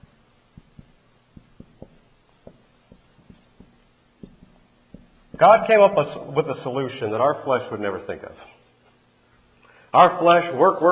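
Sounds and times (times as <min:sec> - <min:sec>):
drawing human bodies on paper: 0:00.0 - 0:05.7
speech: 0:05.4 - 0:08.6, 0:10.0 - 0:10.9.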